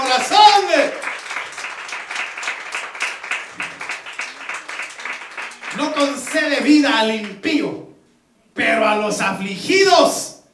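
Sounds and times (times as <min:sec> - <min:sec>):
audience applauding: 0:00.0 - 0:07.4
speech: 0:06.0 - 0:07.8, 0:08.6 - 0:10.3.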